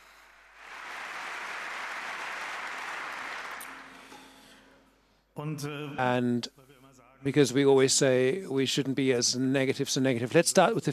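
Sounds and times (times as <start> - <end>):
audience clapping: 0.0 - 4.6
speech: 5.4 - 6.6, 7.2 - 10.9.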